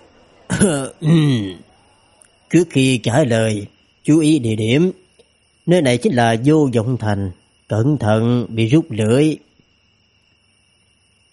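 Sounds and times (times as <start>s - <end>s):
person clearing throat with a dry cough as a reminder: 0.5s - 1.6s
speech: 0.6s - 1.7s, 2.5s - 5.0s, 5.6s - 9.5s.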